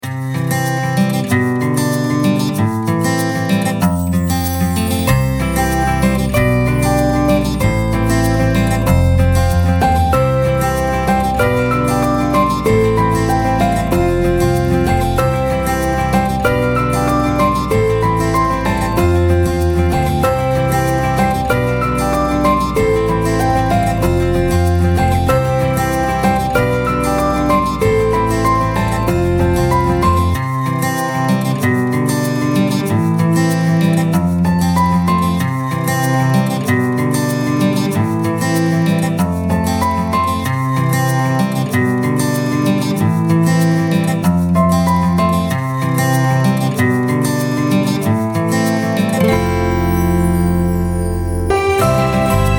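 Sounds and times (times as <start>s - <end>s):
airy acoustic melody: 0.0s - 52.5s.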